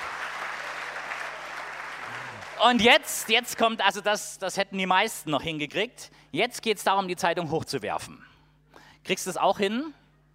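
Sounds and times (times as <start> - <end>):
audience applause at a live stage show: 0.0 - 2.8
speech: 2.6 - 8.3, 9.0 - 10.0.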